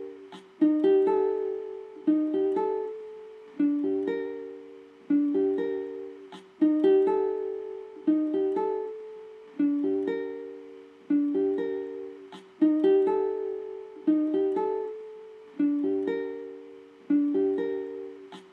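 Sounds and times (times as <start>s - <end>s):
guitar loop in G minor at 80 BPM: 0.0s - 18.5s.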